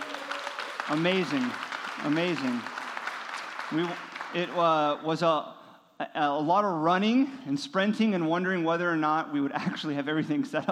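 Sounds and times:
audience applause: 0.0 - 5.0
speech: 0.9 - 2.8, 3.7 - 10.7.

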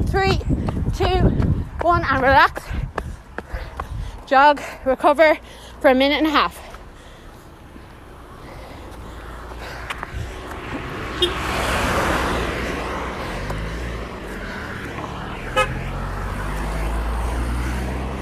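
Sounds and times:
passing traffic rumble: 0.0 - 18.2
speech: 0.1 - 2.8, 4.3 - 6.6
car horn beeps: 11.2 - 11.5, 15.5 - 15.8.

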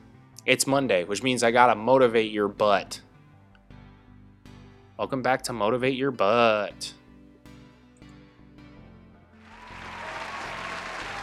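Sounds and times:
speech: 0.4 - 3.1, 5.0 - 7.0
applause: 9.4 - 11.2.

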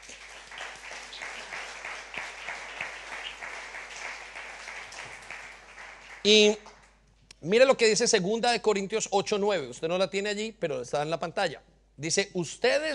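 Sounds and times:
audience applause: 0.0 - 6.3
speech: 6.2 - 6.6, 7.4 - 12.9.

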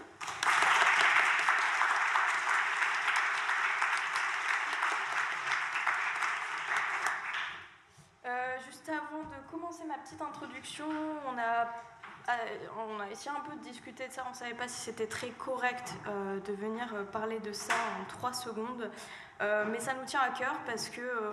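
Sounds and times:
audience applause: 0.0 - 7.6
speech: 10.1 - 21.3.

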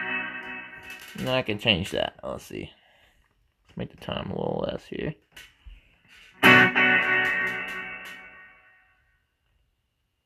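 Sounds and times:
loud distorted electric guitar chord with slapback reverb: 0.0 - 1.4, 6.4 - 8.7
speech: 0.9 - 2.8, 3.8 - 5.5.

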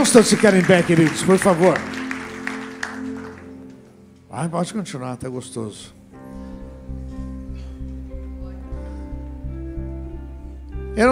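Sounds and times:
speech: 0.0 - 2.0, 4.4 - 6.0
audience clapping in rhythm: 0.0 - 4.0
sustained humming low musical tone: 0.0 - 11.0.

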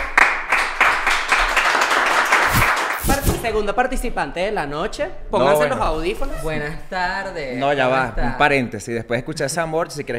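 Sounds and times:
applause: 0.0 - 3.0
speech: 3.4 - 10.1.

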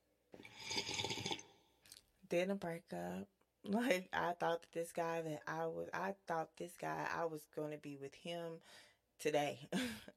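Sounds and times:
person sipping a drink: 0.4 - 2.0
speech: 2.3 - 10.1.

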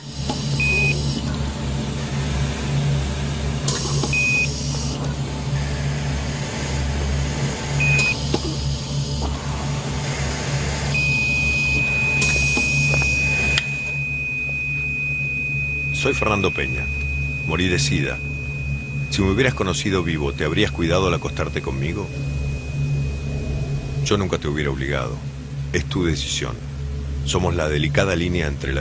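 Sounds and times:
heart monitor beeping: 0.0 - 1.4, 3.7 - 5.8, 7.8 - 9.5, 10.9 - 24.4
low mechanical hum: 0.0 - 28.7
speech: 16.0 - 18.3, 19.1 - 22.4, 24.1 - 28.7.

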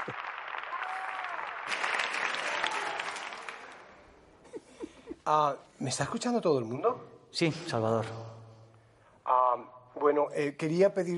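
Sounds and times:
audience applause heard over speakerphone: 0.0 - 3.9
speech: 5.3 - 8.4, 10.0 - 11.1.

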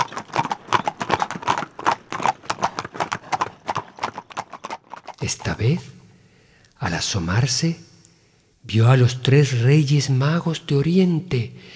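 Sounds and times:
horses' hooves clip-clopping: 0.0 - 5.9
speech: 5.2 - 6.0, 6.8 - 7.9, 8.7 - 11.7.

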